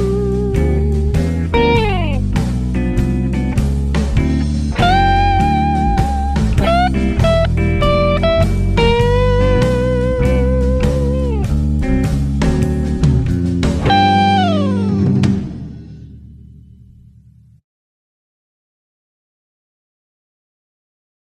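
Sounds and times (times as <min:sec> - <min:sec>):
slow easy blues guitar solo: 0:00.0 - 0:16.3.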